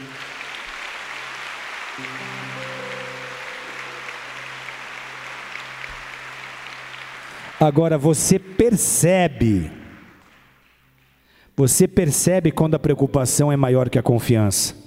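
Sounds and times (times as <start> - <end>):
audience applause: 0.0 - 11.2
low sustained keyboard chords: 1.7 - 7.6
speech: 2.0 - 2.4, 7.6 - 9.8, 11.6 - 14.8.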